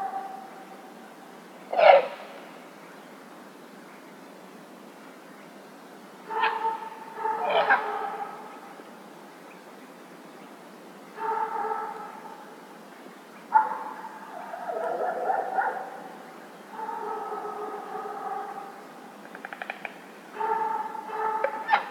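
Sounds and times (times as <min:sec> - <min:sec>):
dog barking at a lake near a village in the evening: 0:00.0 - 0:00.5, 0:06.3 - 0:08.5, 0:11.2 - 0:12.4, 0:13.5 - 0:16.2, 0:16.8 - 0:18.8, 0:20.4 - 0:21.8.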